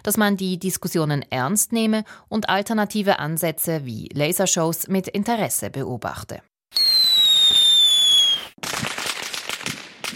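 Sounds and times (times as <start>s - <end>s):
speech: 0.0s - 6.9s
fireworks exploding: 6.8s - 10.1s.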